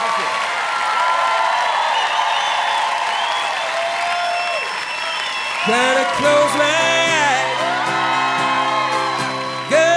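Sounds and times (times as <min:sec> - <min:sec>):
eTown audience applause and cheering: 0:00.0 - 0:09.9
speech: 0:05.6 - 0:06.9.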